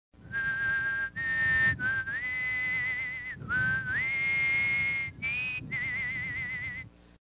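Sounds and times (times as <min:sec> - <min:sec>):
whistle: 0:00.3 - 0:06.9.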